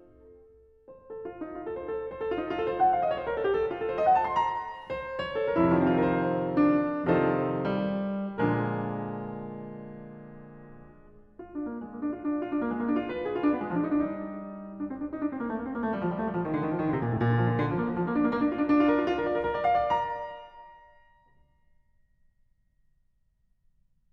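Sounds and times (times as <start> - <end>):
keyboard prelude in B-flat major: 2.5 - 20.8.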